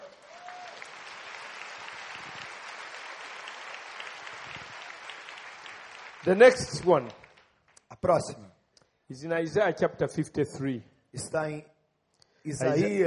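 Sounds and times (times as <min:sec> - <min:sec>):
audience applause: 0:00.0 - 0:07.6
speech: 0:06.2 - 0:07.2, 0:08.0 - 0:08.5, 0:09.1 - 0:11.7, 0:12.4 - 0:13.0.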